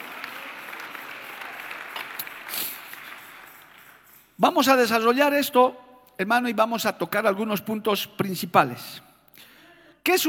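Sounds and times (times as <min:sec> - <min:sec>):
audience applauding: 0:00.0 - 0:04.4
speech: 0:04.4 - 0:10.2.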